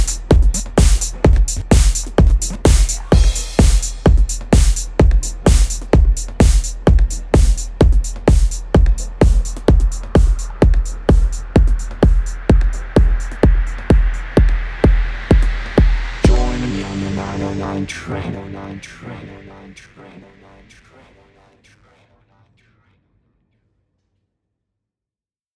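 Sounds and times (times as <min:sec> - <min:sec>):
909 drum machine train beat: 0:00.0 - 0:19.5.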